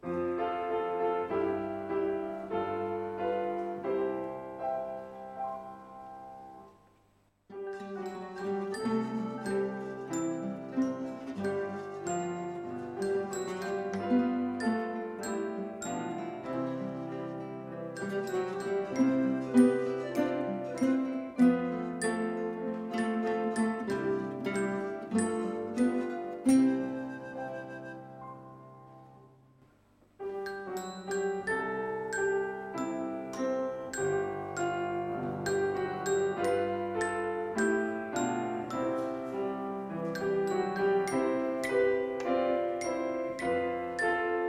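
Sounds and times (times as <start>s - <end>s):
instrumental music: 0.0s - 44.4s.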